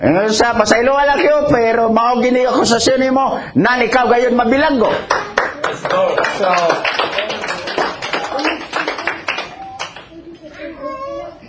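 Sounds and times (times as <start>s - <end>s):
speech: 0.0s - 7.2s
crowd clapping: 5.0s - 10.2s
children's voices: 8.1s - 11.4s.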